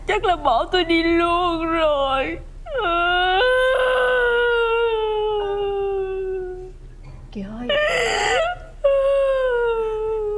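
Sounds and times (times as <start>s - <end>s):
speech: 0.1s - 3.5s, 7.3s - 8.1s
woman crying: 2.7s - 6.8s, 7.6s - 10.3s.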